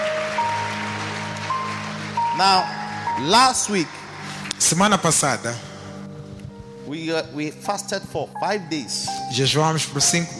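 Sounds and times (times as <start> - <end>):
audience clapping: 0.0 - 5.4
speech: 2.4 - 4.0, 4.6 - 5.7, 6.9 - 10.3.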